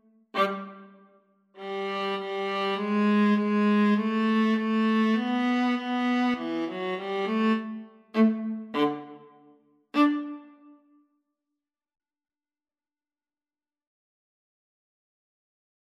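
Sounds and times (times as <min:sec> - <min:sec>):
viola duet: 0:00.3 - 0:01.0, 0:01.6 - 0:10.8.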